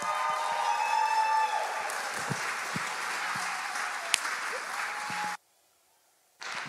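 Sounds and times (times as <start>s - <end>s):
church audience applauding a pastor coming on stage: 0.0s - 5.4s, 6.4s - 6.6s.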